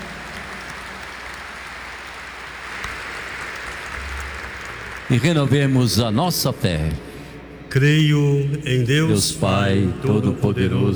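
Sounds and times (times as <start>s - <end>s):
applause: 0.0s - 6.5s
speech: 5.1s - 7.1s, 7.7s - 10.9s.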